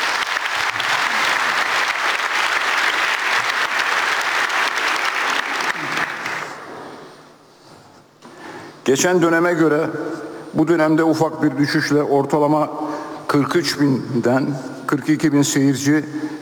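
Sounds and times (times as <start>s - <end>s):
audience applause: 0.0s - 6.7s
speech: 8.9s - 16.3s.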